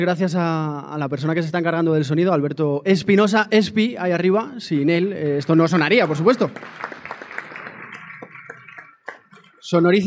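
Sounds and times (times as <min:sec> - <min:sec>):
speech: 0:00.0 - 0:07.0, 0:09.6 - 0:10.0
audience applause: 0:05.2 - 0:09.6.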